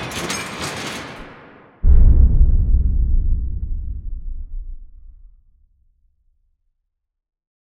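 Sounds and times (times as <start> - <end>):
cinematic metal music: 1.9 - 5.5.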